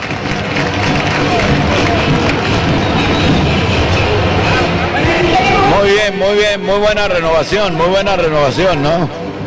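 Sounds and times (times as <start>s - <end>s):
crowd applauding: 0.0s - 6.0s
speech: 6.1s - 9.3s.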